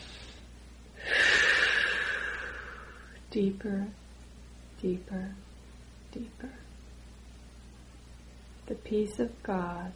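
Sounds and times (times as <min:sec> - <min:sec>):
deep breath in during a guided meditation: 0:00.0 - 0:03.2
speech: 0:03.3 - 0:04.0, 0:04.8 - 0:05.5, 0:06.1 - 0:06.7, 0:08.7 - 0:09.9.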